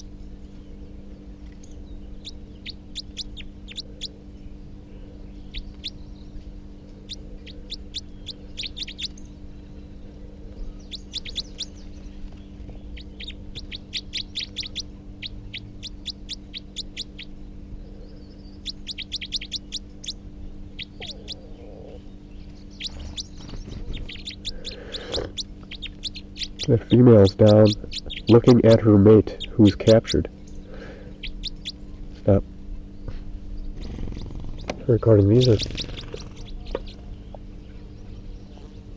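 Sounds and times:
wild male bird giving rapid type 4 calls: 1.8 - 4.2, 7.1 - 9.3, 10.6 - 17.4, 18.3 - 21.6, 22.4 - 31.8, 33.7 - 37.2
speech: 26.7 - 30.3, 32.2 - 32.5, 34.9 - 35.8.

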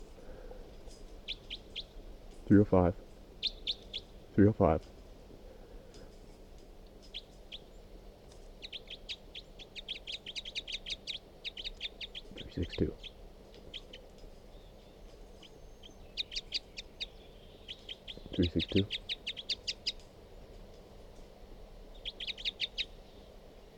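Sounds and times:
bird calls recorded in the field: 1.2 - 2.0, 3.4 - 4.2, 7.0 - 7.8, 8.6 - 20.0, 21.9 - 23.7
speech: 2.5 - 3.0, 4.4 - 5.0.

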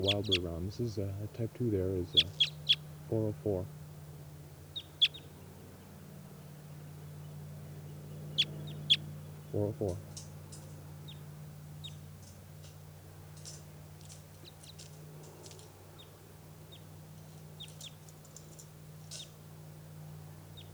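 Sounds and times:
speech: 0.0 - 3.8, 9.5 - 10.1
steady low hum: 0.0 - 12.2
birds chirping excitedly: 0.0 - 20.7.

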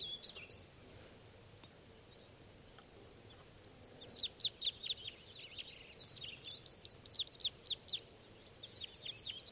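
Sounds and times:
birds chirping in spruce trees: 0.0 - 9.5.

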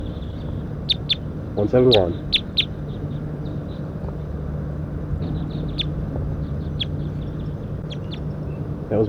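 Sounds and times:
low rumble: 0.0 - 9.0
wild bird calling in a pine tree: 0.0 - 9.0
speech: 1.6 - 2.4.

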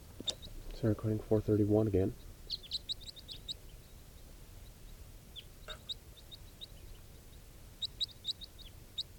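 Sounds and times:
low background hiss: 0.0 - 9.1
speech: 0.8 - 2.3
crossbill calls: 2.1 - 9.1.

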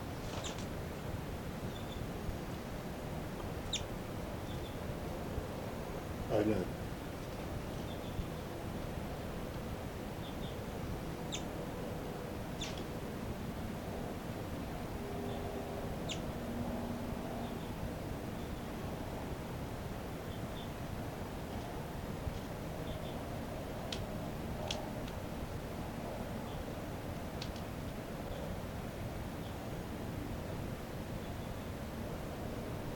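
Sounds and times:
steady hiss of noise: 0.0 - 32.9
pet bird chirping while flying around: 1.7 - 2.1, 3.7 - 4.8, 7.8 - 8.4, 10.2 - 10.6, 11.3 - 11.5, 12.6 - 12.8.

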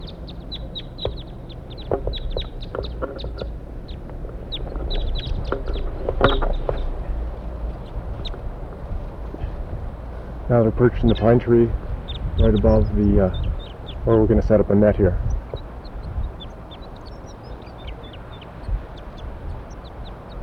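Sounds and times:
flock of wild birds calling: 0.0 - 20.4
steady low rumble of noise: 0.0 - 20.4
speech: 10.5 - 11.8, 12.4 - 13.4, 14.0 - 15.3.

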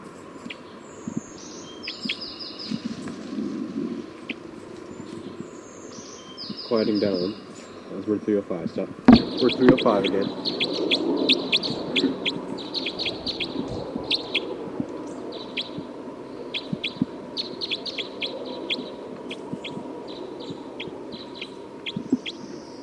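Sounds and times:
steady low rumbling noise: 0.0 - 22.8
bird calling with short high-pitched chirps: 0.3 - 3.2, 4.1 - 8.1, 9.0 - 22.8
speech: 6.7 - 10.6.

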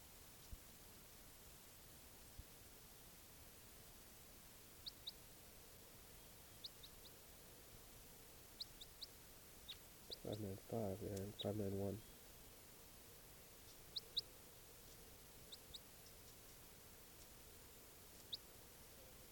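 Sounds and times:
steady hiss of noise: 0.0 - 19.2
high-pitched bird chirps: 6.2 - 7.2, 8.6 - 12.2, 13.6 - 14.3, 15.4 - 16.4, 18.1 - 19.2
speech: 10.3 - 12.1.

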